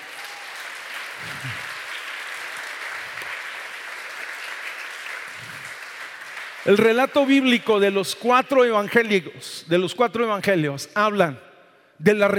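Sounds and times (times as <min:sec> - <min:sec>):
audience applauding loudly: 0:00.0 - 0:07.6
speech: 0:06.6 - 0:12.3.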